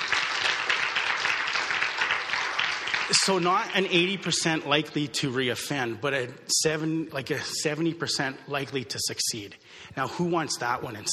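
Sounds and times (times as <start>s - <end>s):
audience clapping: 0.0s - 4.2s
speech: 3.1s - 11.1s.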